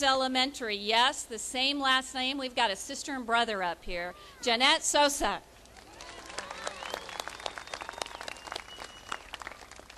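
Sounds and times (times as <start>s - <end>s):
speech: 0.0s - 5.5s
audience applause: 5.8s - 9.9s.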